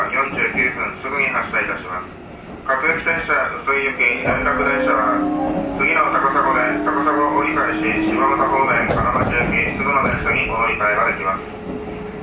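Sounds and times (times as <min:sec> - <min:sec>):
electric train running with VVVF GTO inverter: 0:00.0 - 0:12.2.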